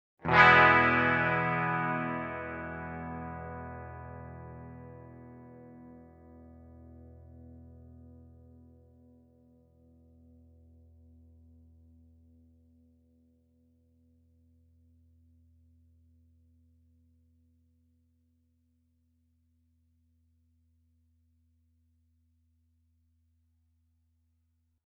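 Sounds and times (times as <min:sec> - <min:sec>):
Cort and Ibanez guitar sustain comparison: 0:00.2 - 0:06.0.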